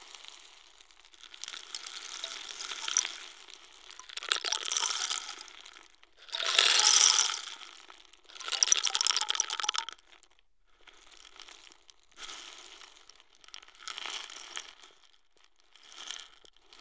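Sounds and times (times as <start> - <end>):
African rain stick: 1.4 - 3.2, 4.0 - 5.5, 6.3 - 7.7, 8.4 - 9.9.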